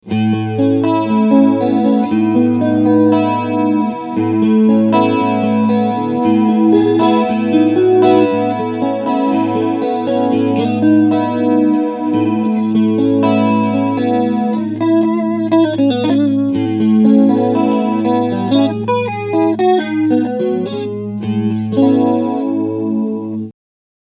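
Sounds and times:
chorus effect: 0.0 - 23.5.

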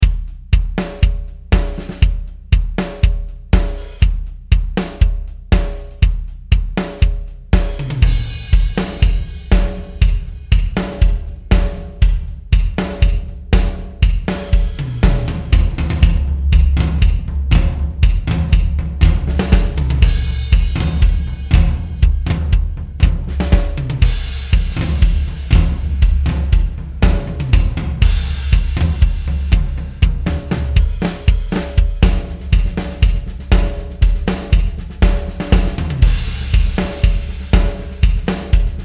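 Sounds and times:
drums: 0.0 - 38.8.

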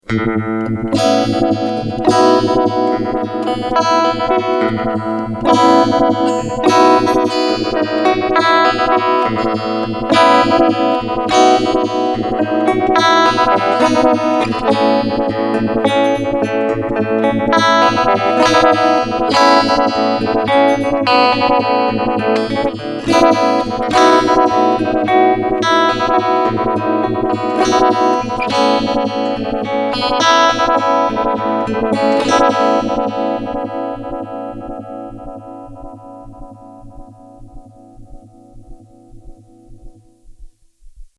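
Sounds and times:
chorus singing: 0.3 - 34.1.

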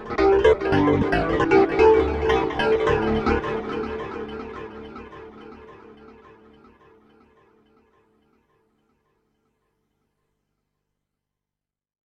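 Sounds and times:
Korg minilogue synthesizer lead through Moog MF103 filter: 0.0 - 6.0.

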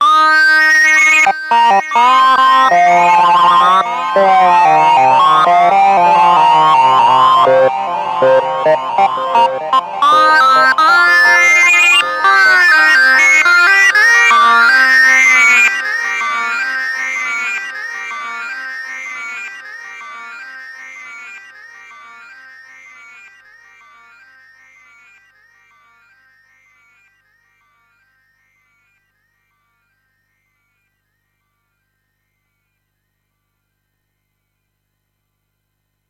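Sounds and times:
synth lead through tc electronic Flashback X4 delay: 0.0 - 25.2.

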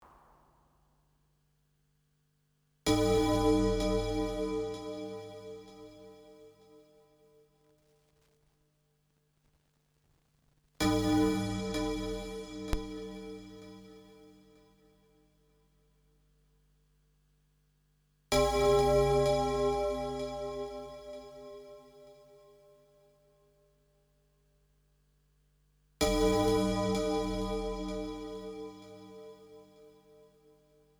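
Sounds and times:
MiniFreak synthesizer: 2.9 - 6.6, 10.8 - 14.2, 18.3 - 22.4, 26.0 - 30.2.

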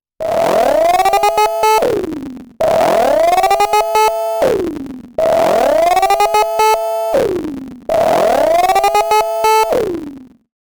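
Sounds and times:
MS-20 synthesizer reed alert effect: 0.2 - 10.2.

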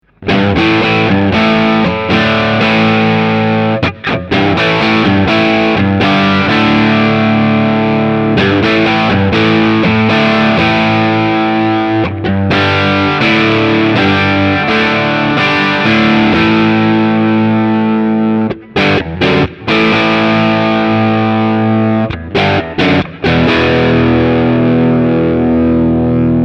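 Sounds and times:
JCM 800 amplifier pure tone: 0.0 - 26.4.

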